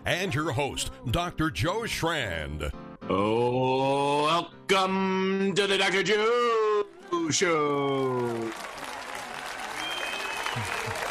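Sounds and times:
speech: 0:00.1 - 0:06.7, 0:07.3 - 0:08.7, 0:10.6 - 0:11.0
audience applause: 0:06.9 - 0:11.0
whistle-like tone: 0:09.8 - 0:10.9.

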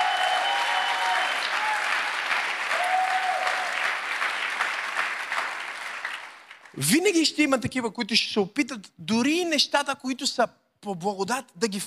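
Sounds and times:
audience applause: 0:00.0 - 0:06.8
speech: 0:06.8 - 0:11.8.

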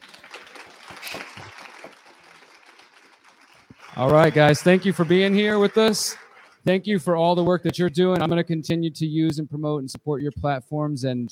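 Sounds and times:
crowd round of applause: 0:00.0 - 0:06.6
speech: 0:04.0 - 0:11.3.

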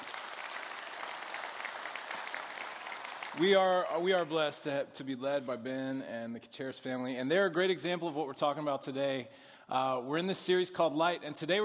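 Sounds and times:
audience clapping: 0:00.0 - 0:04.5
speech: 0:03.4 - 0:11.6.

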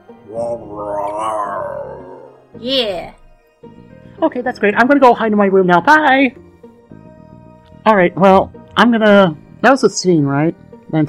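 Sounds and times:
speech: 0:00.3 - 0:01.5, 0:02.6 - 0:06.4, 0:07.9 - 0:11.0
voice imitating a dog's growl: 0:00.3 - 0:02.5.

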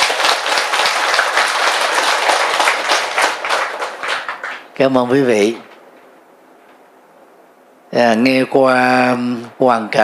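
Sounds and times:
audience applause: 0:00.0 - 0:04.8
speech: 0:04.8 - 0:05.7, 0:07.9 - 0:10.0.

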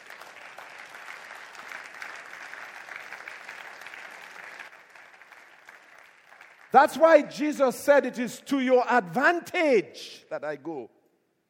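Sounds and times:
audience applause: 0:00.0 - 0:07.2
speech: 0:06.7 - 0:11.0.

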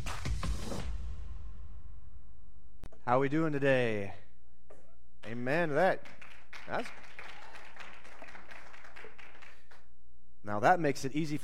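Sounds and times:
audience clapping: 0:00.0 - 0:00.6, 0:05.3 - 0:09.9
speech: 0:03.1 - 0:04.2, 0:05.3 - 0:07.0, 0:10.4 - 0:11.4.

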